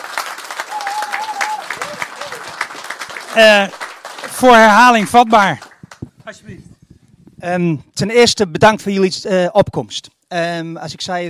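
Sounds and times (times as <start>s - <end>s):
audience applause: 0.0s - 5.9s
speech: 3.4s - 3.8s, 4.4s - 5.6s, 7.4s - 11.2s.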